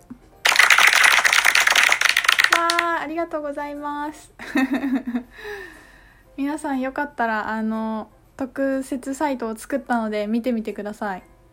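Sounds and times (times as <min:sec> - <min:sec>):
many hands clapping: 0:00.4 - 0:03.0
speech: 0:02.7 - 0:05.8, 0:06.4 - 0:11.3
laughter: 0:04.4 - 0:05.2.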